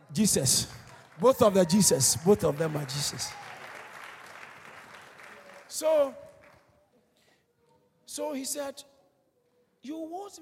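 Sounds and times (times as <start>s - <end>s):
audience clapping: 0.0s - 6.8s
speech: 0.1s - 3.5s, 5.8s - 6.2s, 8.1s - 8.9s, 9.8s - 10.4s.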